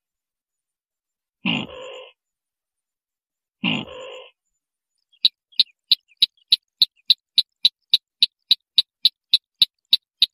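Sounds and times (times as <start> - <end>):
white-breasted waterhen croaks: 1.4 - 2.2, 3.6 - 4.4, 5.1 - 10.3.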